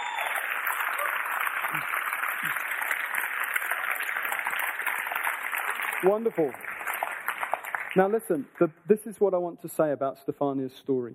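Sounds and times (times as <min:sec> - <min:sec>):
round of applause: 0:00.0 - 0:08.5
speech: 0:06.0 - 0:06.7, 0:08.0 - 0:11.1.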